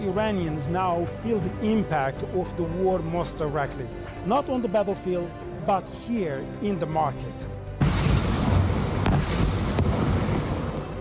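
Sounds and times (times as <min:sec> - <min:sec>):
speech: 0:00.0 - 0:07.6
explosion rumble from an Israeli strike in southern Lebanon: 0:07.8 - 0:10.9.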